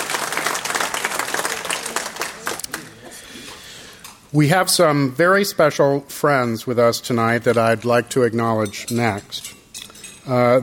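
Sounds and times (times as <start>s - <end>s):
crowd applauding: 0.0s - 3.2s
speech: 4.3s - 9.6s, 10.3s - 10.6s.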